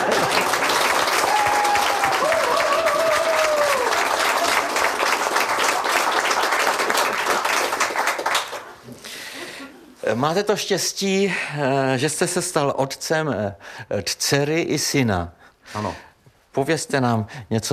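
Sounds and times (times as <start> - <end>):
large crowd applause: 0.0 - 8.8
speech: 10.2 - 17.7.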